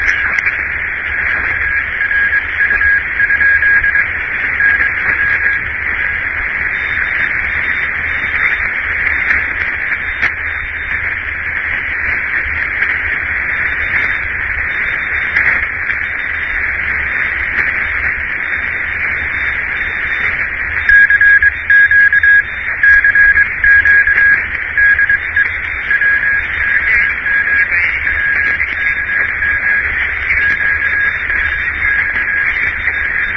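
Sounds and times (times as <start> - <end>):
radio CW signal in West Haven: 0.0 - 33.3.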